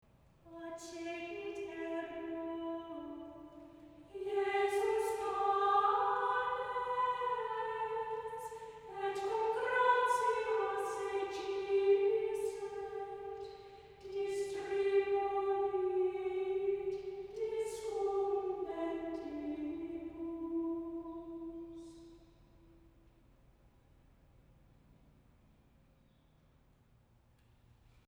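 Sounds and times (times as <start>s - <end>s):
antiphon chant in mode 1 on G: 0.5s - 22.7s.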